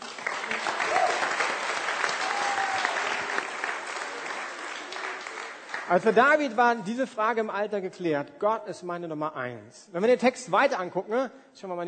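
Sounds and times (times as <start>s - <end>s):
audience applause: 0.0s - 6.2s
faint whoops: 0.7s - 1.4s, 2.2s - 3.4s
speech: 5.9s - 11.8s.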